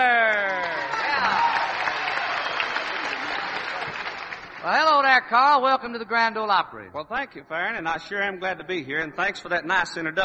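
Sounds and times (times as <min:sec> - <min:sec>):
audience applause: 0:00.0 - 0:04.9
speech: 0:05.3 - 0:10.2.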